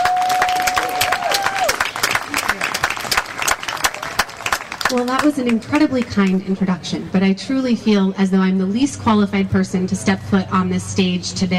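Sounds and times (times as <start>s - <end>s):
audience applause: 0.0s - 6.0s
speech: 4.9s - 11.5s.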